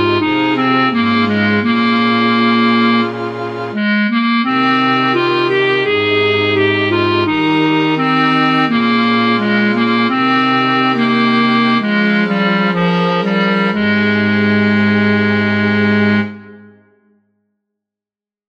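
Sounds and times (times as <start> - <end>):
clarinet playing an Irish air: 0.0 - 17.0.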